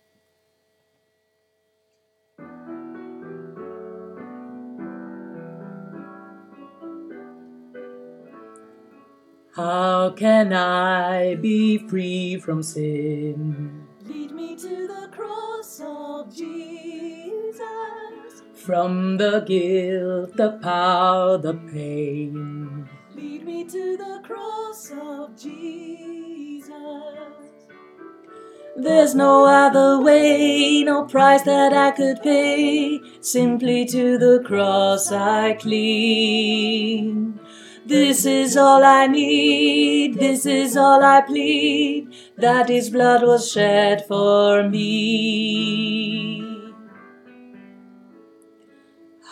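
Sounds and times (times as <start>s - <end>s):
tenor singing: 9.6s - 27.6s, 28.8s - 46.9s.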